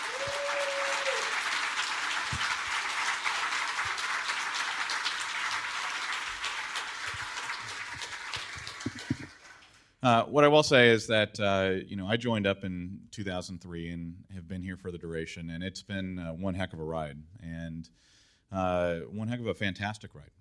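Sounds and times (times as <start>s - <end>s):
audience applause: 0.0s - 9.8s
speech: 10.0s - 20.3s.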